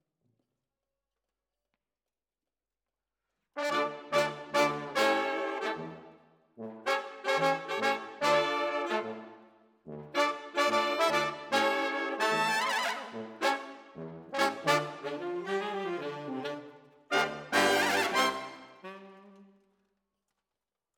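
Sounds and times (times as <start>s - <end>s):
brass instruments: 3.6s - 19.7s.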